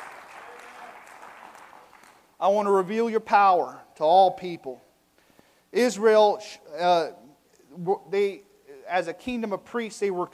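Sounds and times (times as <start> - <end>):
crowd clapping hands: 0.0 - 2.4
speech: 2.4 - 4.8, 5.7 - 7.2, 7.8 - 10.3.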